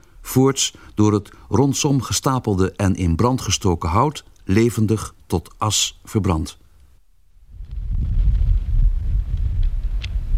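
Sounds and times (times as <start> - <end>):
speech: 0.4 - 6.6
howling wind near the sea: 7.4 - 10.3.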